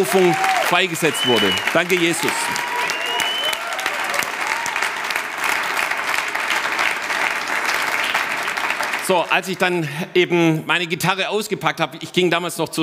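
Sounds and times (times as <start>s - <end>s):
speech: 0.0s - 2.7s, 9.1s - 12.8s
applause: 0.0s - 9.8s.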